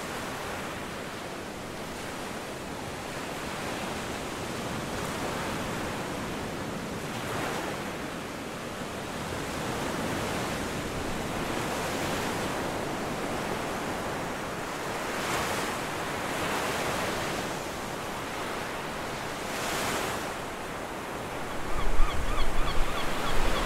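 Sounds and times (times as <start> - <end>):
ocean waves on the beach: 0.0 - 23.6
seagulls calling on the beach: 21.3 - 23.6.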